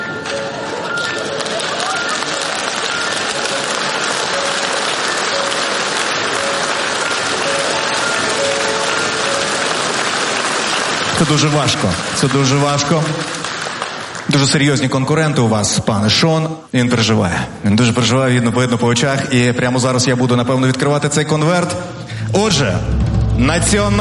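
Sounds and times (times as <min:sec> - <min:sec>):
audience applause at an awards ceremony: 0:00.2 - 0:15.0
speech: 0:11.2 - 0:13.4, 0:14.3 - 0:23.9.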